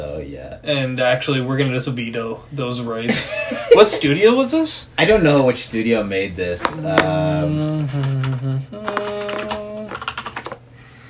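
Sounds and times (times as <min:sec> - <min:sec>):
speech: 0:00.0 - 0:08.2
sustained tonal humming: 0:06.7 - 0:10.0
rapid keyboard typing: 0:08.0 - 0:10.6.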